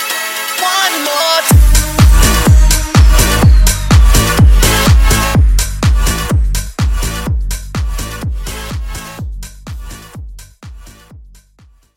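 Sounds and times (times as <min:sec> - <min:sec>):
music transition: 0:01.5 - 0:09.2.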